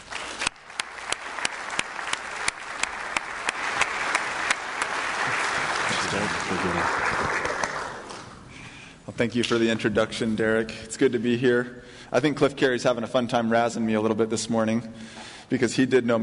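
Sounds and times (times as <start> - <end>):
audience applause welcoming a speaker to the stage: 0.0 - 8.4
speech: 9.2 - 16.2.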